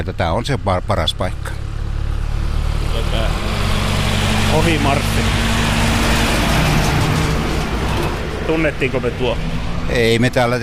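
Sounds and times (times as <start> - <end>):
speech: 0.0 - 1.6, 3.0 - 3.6, 4.5 - 5.5, 8.5 - 10.6
tractor engine passing by: 0.0 - 10.6.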